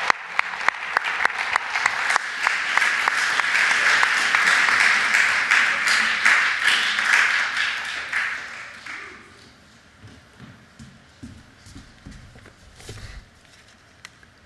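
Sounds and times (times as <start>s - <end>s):
audience applause welcoming a guest speaker at a church talk: 0.0s - 9.4s.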